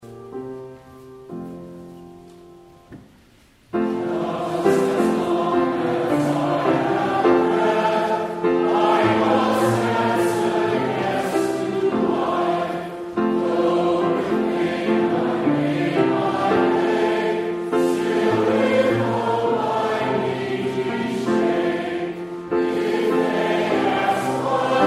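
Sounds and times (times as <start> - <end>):
hymn: 3.8 - 24.8.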